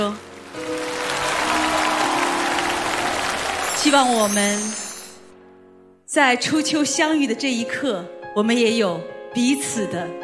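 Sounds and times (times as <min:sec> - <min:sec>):
audience applause at a live music event in Zhaoqing: 0:00.0 - 0:05.2
speech: 0:03.8 - 0:04.8, 0:06.1 - 0:10.2.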